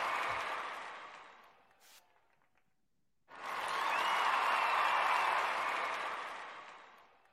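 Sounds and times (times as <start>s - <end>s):
applause sound effect: 0.0s - 7.3s.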